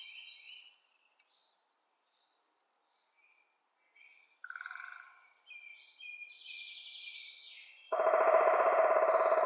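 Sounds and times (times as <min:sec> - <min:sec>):
woodpeckers Picidae: 0:07.9 - 0:09.4.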